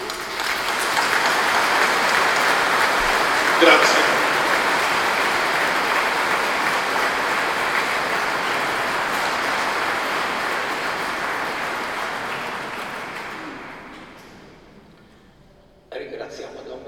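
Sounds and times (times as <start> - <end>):
audience applause: 0.0 - 14.8
brief spoken word: 3.5 - 4.4
speech: 3.6 - 3.9.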